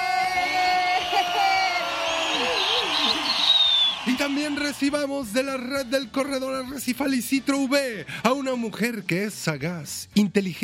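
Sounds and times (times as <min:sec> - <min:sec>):
loud cheering and whoops: 0:00.0 - 0:05.2
audience applause: 0:00.4 - 0:05.7
speech: 0:04.1 - 0:10.6.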